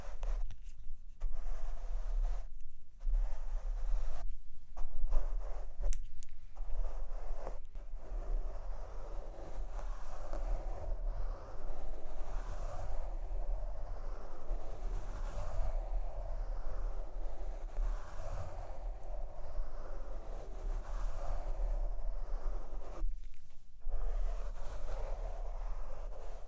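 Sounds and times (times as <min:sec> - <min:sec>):
mic brushing and tapping: 0:00.0 - 0:26.4.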